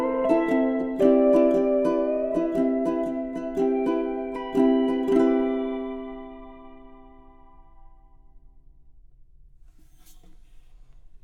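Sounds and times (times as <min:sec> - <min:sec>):
Hawaiian cowboy instrumental music: 0:00.0 - 0:08.0.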